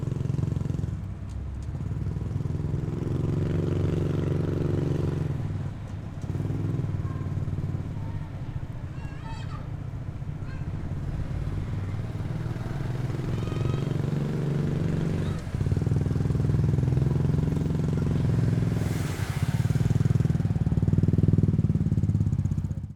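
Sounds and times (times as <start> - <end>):
motorcycle riding through the city at different speeds: 0.0 - 8.8, 9.7 - 22.9.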